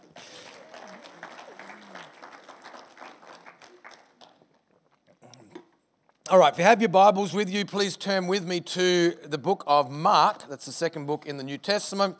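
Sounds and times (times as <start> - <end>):
audience applause: 0.0 - 4.6
speech: 6.3 - 12.1.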